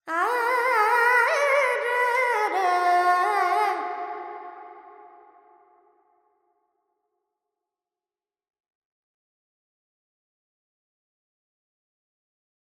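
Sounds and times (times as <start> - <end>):
Carnatic female vocal alaps in Dorian: 0.0 - 4.4.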